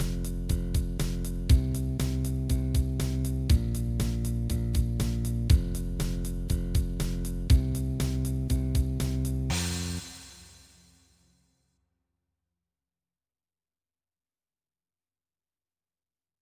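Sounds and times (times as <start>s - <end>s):
blues bass line: 0.0s - 10.5s.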